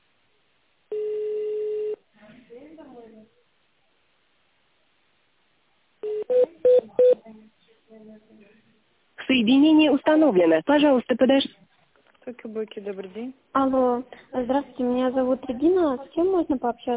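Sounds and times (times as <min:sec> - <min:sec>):
long steady beep on an automated office phone line: 0:00.9 - 0:02.0, 0:06.0 - 0:07.2
telephone keypad touch-tones dialing an extension number: 0:00.9 - 0:02.0
speech: 0:09.4 - 0:11.6, 0:12.2 - 0:16.9.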